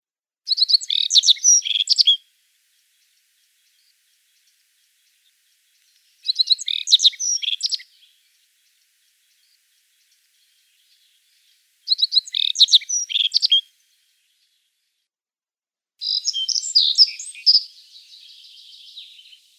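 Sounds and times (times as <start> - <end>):
black-faced bunting twittering: 0.5 - 2.2, 5.9 - 8.1, 11.9 - 13.7, 16.0 - 19.5.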